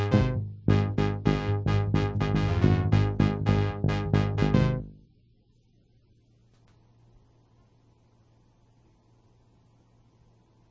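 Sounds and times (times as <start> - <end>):
bass: 0.0 - 5.2.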